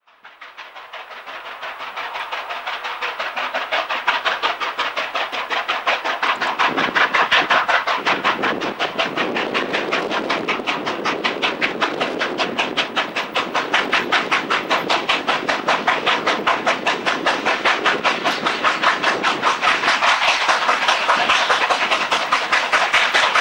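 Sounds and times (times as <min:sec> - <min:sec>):
steam locomotive in China: 0:00.0 - 0:23.4.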